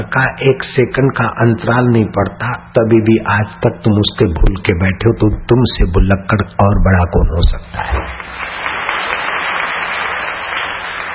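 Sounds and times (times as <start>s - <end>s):
speech: 0.0s - 8.5s
audience clapping: 7.8s - 11.1s.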